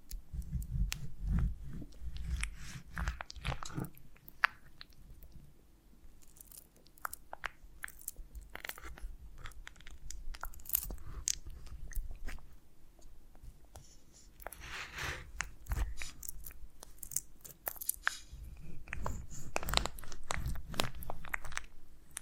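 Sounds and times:
honeycomb on a branch bitten and chewed: 0:00.0 - 0:05.4, 0:06.1 - 0:12.5, 0:13.6 - 0:22.2.

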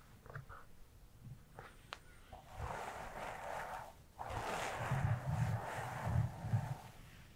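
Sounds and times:
hair brushing strokes: 0:02.4 - 0:06.9.

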